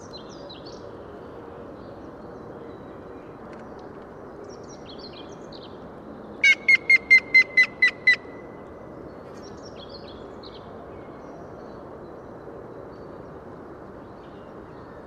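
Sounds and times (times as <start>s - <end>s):
grey-headed woodpecker calling: 6.4s - 8.4s.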